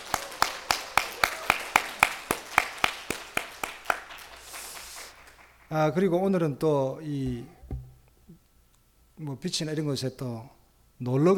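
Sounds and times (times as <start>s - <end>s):
audience applause: 0.0s - 5.6s
speech: 5.7s - 7.6s, 9.2s - 11.3s.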